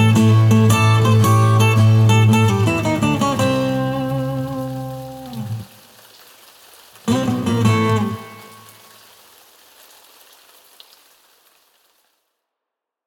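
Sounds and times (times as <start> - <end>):
acoustic music: 0.0 - 5.7, 7.1 - 8.9.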